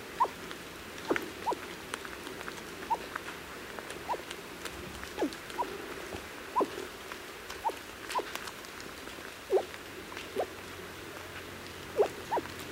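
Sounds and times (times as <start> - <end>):
male Mikado pheasant: 0.2 - 0.4, 1.0 - 3.2, 4.0 - 4.3, 5.1 - 5.9, 6.5 - 6.9, 7.5 - 8.4, 9.5 - 10.5, 11.9 - 12.6.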